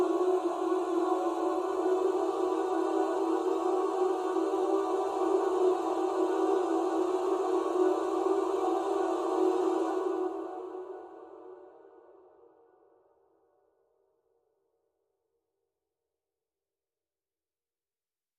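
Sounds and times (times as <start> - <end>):
space choir: 0.0 - 13.1.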